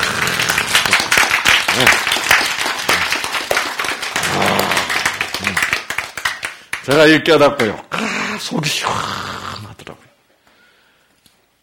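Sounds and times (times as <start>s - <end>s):
audience clapping: 0.0s - 7.9s
speech: 6.9s - 9.3s.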